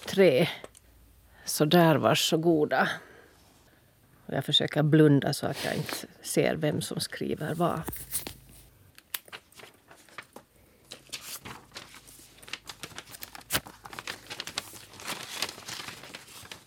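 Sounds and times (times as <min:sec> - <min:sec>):
speech: 0:00.1 - 0:00.7, 0:01.5 - 0:03.1, 0:04.3 - 0:08.3
paper and envelopes rustling as handed out to a reading jury: 0:07.4 - 0:16.6.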